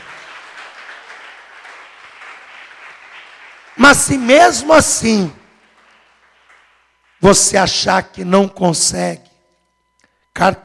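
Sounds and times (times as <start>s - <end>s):
audience applause: 0.0s - 7.2s
speech: 3.8s - 5.4s, 7.2s - 9.3s, 10.4s - 10.6s.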